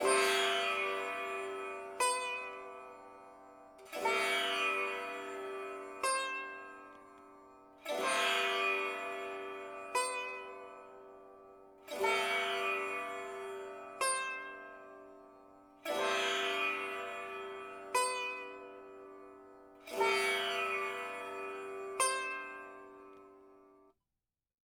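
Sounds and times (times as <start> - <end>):
sitar: 0.0 - 23.9.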